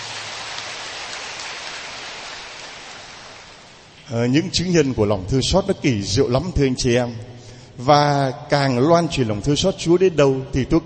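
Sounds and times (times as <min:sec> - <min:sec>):
audience applause: 0:00.0 - 0:03.6
speech: 0:04.1 - 0:10.8.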